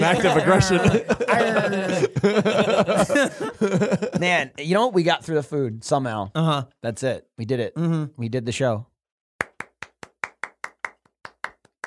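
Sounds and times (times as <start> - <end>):
laughter: 0.0 - 4.5
speech: 0.0 - 8.9
hand clapping: 9.4 - 11.8.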